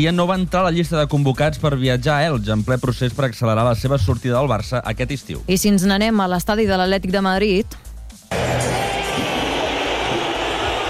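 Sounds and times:
speech: 0.0s - 7.9s
stadium crowd whistling and jeering at a player: 8.3s - 10.8s.

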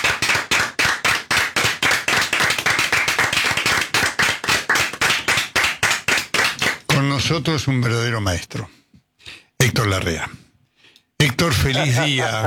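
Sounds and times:
audience applauding rhythmically: 0.0s - 7.0s
speech: 7.3s - 8.8s, 9.8s - 10.4s, 11.2s - 12.4s
laughter: 11.6s - 12.4s.

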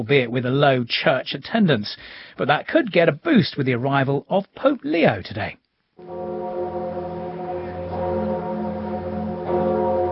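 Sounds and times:
speech: 0.0s - 6.2s
church bells of Notre Dame ringing: 6.0s - 10.1s.

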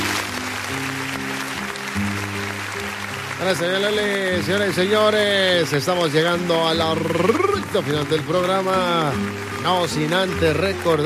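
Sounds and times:
audience clapping: 0.0s - 11.0s
speech: 3.4s - 11.0s.

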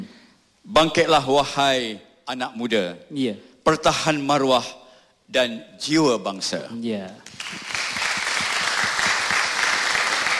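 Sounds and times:
speech: 0.8s - 7.8s
audience clapping: 7.2s - 10.3s.

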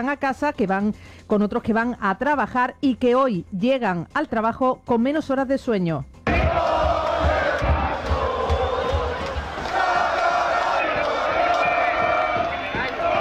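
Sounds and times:
speech: 0.0s - 6.1s
low thumping beats: 6.3s - 13.1s
street crowd shouting, chanting and cheering after a football victory: 6.3s - 13.1s.

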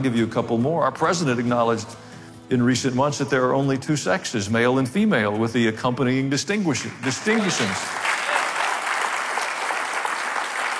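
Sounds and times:
speech: 0.0s - 8.0s
audience applause: 7.0s - 10.7s.

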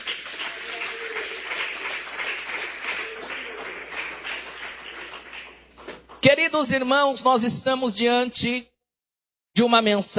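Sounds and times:
audience applauding: 0.0s - 6.2s
speech: 6.3s - 8.7s, 9.6s - 10.1s.

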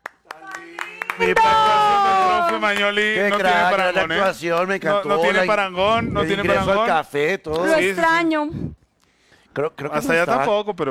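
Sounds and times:
applause honoring footballer Lionel Messi: 0.0s - 5.6s
speech: 1.2s - 8.8s, 9.6s - 10.8s.

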